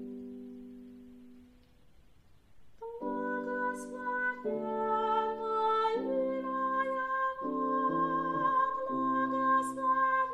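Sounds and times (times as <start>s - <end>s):
tenor singing: 2.8s - 10.3s.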